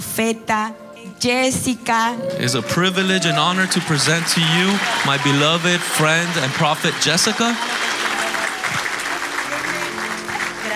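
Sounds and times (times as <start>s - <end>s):
speech: 0.2s - 7.9s
church audience applause: 2.4s - 10.7s.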